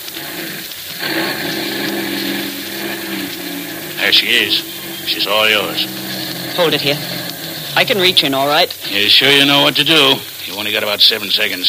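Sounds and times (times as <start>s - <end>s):
armored car engine droning: 0.0s - 9.3s
hissy mechanical whine: 0.0s - 9.4s
speech: 4.1s - 7.2s, 7.8s - 11.6s.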